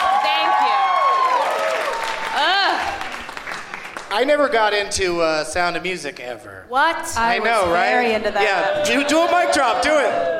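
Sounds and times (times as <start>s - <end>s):
audience applause: 0.0s - 4.4s
speech: 4.2s - 10.3s.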